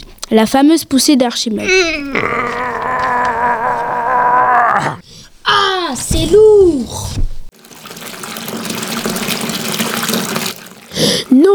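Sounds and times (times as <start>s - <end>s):
speech: 0.3s - 2.8s
water gushing from a tap into a bathtub: 1.5s - 5.0s, 5.8s - 11.5s.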